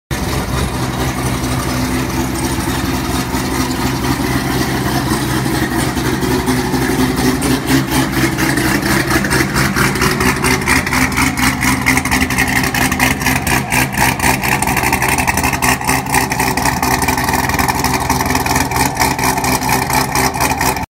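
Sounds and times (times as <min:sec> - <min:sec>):
C7 exhaust: 0:00.1 - 0:20.8.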